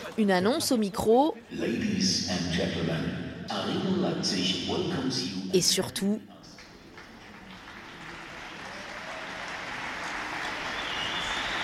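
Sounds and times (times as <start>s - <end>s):
speech: 0.2s - 6.3s
audience applauding in an indoor arena: 6.5s - 11.6s.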